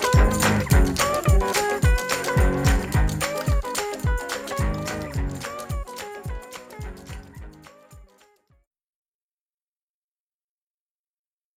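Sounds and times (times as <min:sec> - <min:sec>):
instrumental music: 0:00.0 - 0:08.6.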